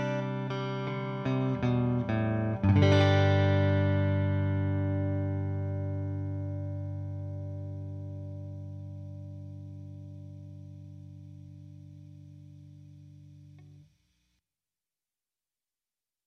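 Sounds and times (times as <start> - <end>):
electric guitar: 0.0 - 13.8.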